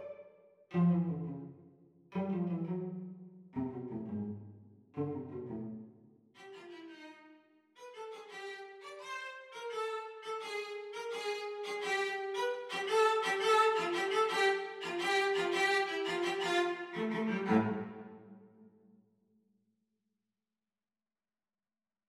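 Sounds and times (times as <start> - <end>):
cello playing teacher part of a duet: 0.0 - 1.5, 2.1 - 5.8, 8.0 - 18.2.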